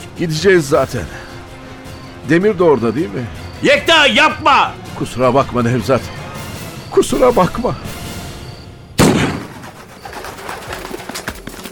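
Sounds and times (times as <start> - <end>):
speech: 0.2 - 1.2, 2.3 - 6.2, 6.9 - 7.9
gunshot: 9.0 - 9.8.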